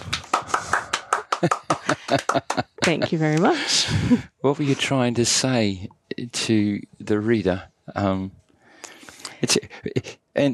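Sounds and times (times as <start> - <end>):
hand clapping: 0.0 - 3.5
laughter: 0.0 - 4.2, 9.4 - 10.2
speech: 1.4 - 8.4, 9.4 - 10.5.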